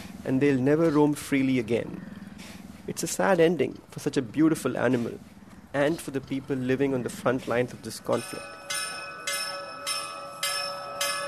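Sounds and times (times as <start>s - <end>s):
speech: 0.2s - 2.1s, 2.9s - 8.6s
temple bells ringing for evening prayers in Adarshnagar: 7.9s - 11.2s.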